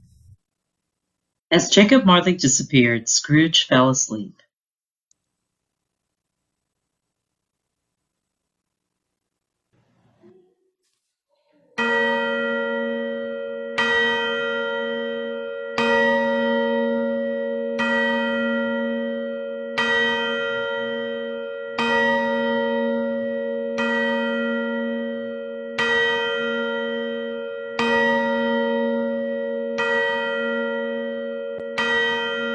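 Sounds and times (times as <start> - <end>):
speech: 1.5 - 4.4
clock bell striking midnight: 11.8 - 32.5.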